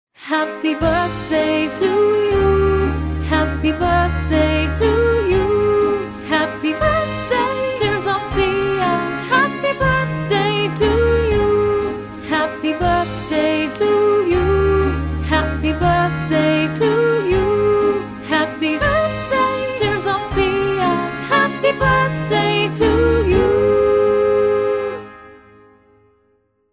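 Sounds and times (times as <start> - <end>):
birthday song: 0.2 - 25.3.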